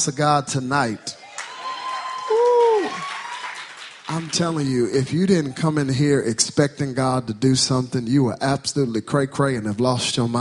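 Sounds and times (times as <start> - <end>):
speech: 0.0 - 1.2, 4.2 - 10.3
audience clapping: 1.3 - 5.1.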